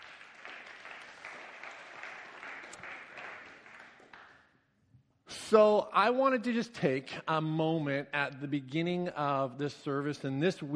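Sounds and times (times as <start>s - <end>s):
audience applause: 0.0s - 4.4s
speech: 5.5s - 10.7s.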